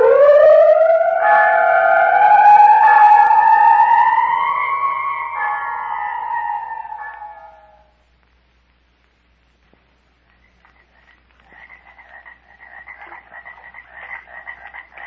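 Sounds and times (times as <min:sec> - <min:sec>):
frogs croaking in a swamp at night: 0:00.0 - 0:07.9, 0:10.2 - 0:15.0
low steady hum: 0:00.0 - 0:15.0.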